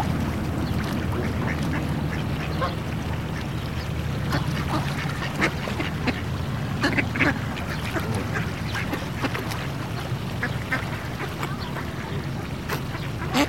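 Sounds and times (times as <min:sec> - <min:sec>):
low rumble: 0:00.0 - 0:11.1
ducks quacking: 0:00.0 - 0:13.4.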